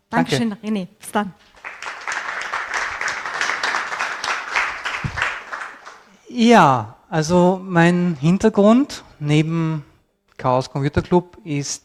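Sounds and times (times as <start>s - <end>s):
speech: 0.1s - 1.6s, 6.3s - 11.8s
audience applause: 1.6s - 6.1s.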